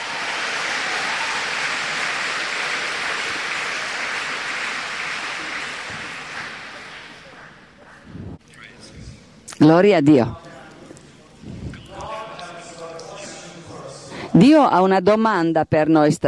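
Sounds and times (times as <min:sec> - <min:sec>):
audience applause: 0:00.0 - 0:07.6
speech: 0:09.6 - 0:10.4, 0:14.4 - 0:16.2.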